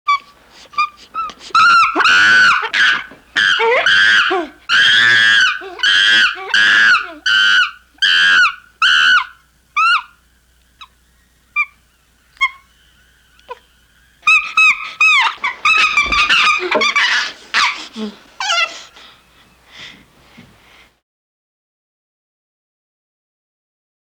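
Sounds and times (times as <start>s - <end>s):
chimpanzee screaming: 0.1s - 10.2s, 11.6s - 11.8s, 12.4s - 19.0s.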